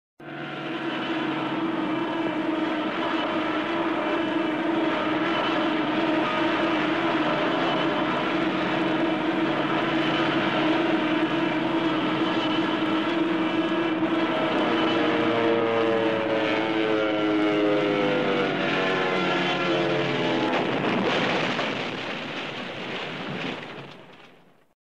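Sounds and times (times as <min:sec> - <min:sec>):
airplane crash sound effect: 0:01.0 - 0:24.6.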